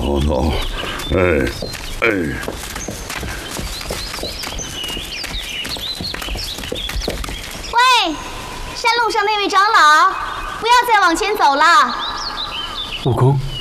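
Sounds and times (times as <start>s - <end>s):
horse hooves clip-clopping on a mountain path: 0.0s - 8.0s
birds chirping: 0.0s - 13.6s
speech: 0.1s - 2.8s, 9.0s - 12.1s, 13.0s - 13.6s.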